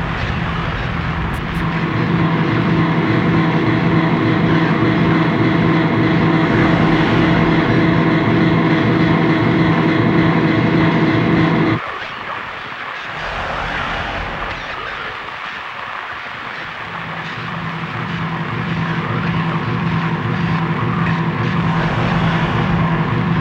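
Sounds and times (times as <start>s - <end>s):
interference: 0.0s - 23.4s.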